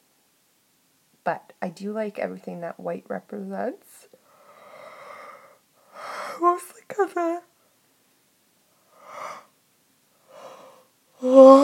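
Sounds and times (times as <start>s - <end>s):
speech: 1.2s - 4.1s, 6.4s - 7.5s, 11.2s - 11.6s
long yawn: 10.3s - 11.6s.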